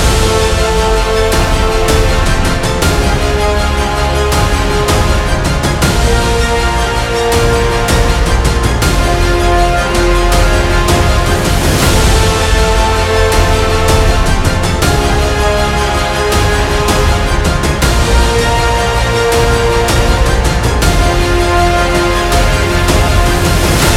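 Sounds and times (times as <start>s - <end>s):
motivational epic cinematic music: 0.0s - 23.9s.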